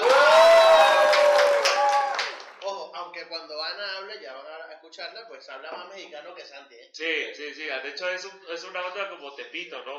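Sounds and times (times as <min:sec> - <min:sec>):
applause: 0:00.0 - 0:02.8
speech: 0:05.0 - 0:09.9.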